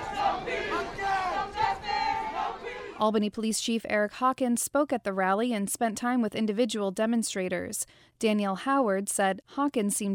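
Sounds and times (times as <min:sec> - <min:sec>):
hundreds of protesters at a George Floyd rally chanting in unison: 0:00.0 - 0:03.0
speech: 0:03.0 - 0:10.1.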